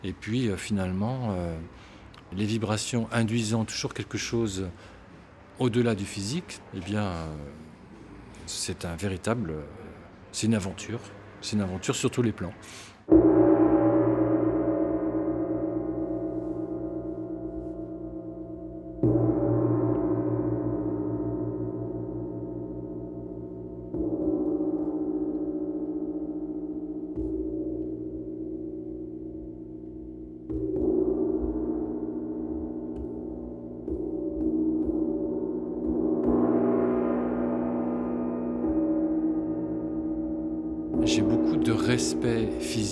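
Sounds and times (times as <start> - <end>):
speech: 0.0 - 5.0, 5.6 - 7.7, 8.5 - 13.3
gong being played, resonating vibrations: 13.1 - 42.9.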